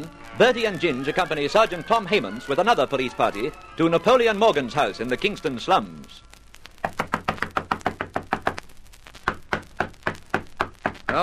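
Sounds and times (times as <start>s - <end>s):
speech: 0.0s - 6.3s
loud knocking on a door: 6.9s - 8.6s, 9.3s - 11.2s.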